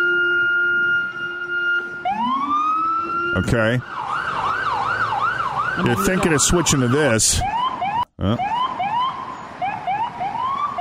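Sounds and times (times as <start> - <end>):
city siren: 0.0 - 10.7
low rumble of traffic: 0.6 - 10.7
speech: 3.4 - 4.1, 5.8 - 7.6, 8.2 - 8.6.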